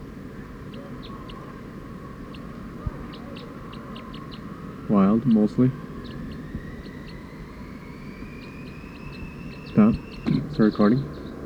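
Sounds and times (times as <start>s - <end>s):
wild bird calling: 0.0s - 11.4s
speech: 4.9s - 5.8s, 10.6s - 11.1s.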